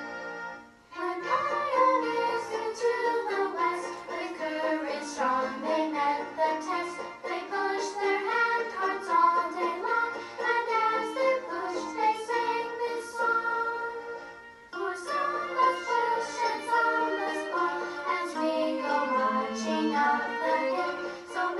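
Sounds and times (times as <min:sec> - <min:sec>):
vocals: 0:00.9 - 0:21.5.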